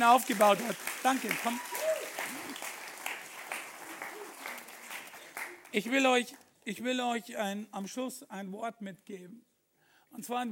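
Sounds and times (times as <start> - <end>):
speech: 0.0 - 1.8, 5.7 - 9.5, 10.1 - 10.4
audience applause: 0.0 - 6.1.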